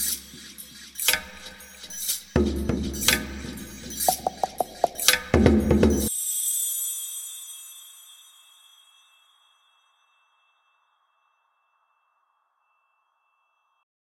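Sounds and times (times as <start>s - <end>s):
street percussion instruments from Brazil, Cuba, Africa, Jamaica, Persia and India: 0.0s - 6.1s.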